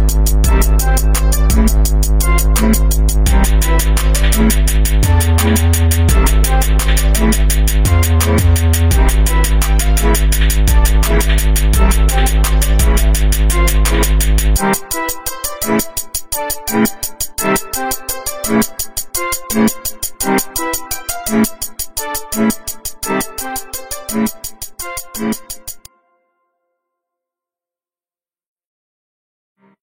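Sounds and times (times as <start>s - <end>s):
goofy beat: 0.0s - 25.9s.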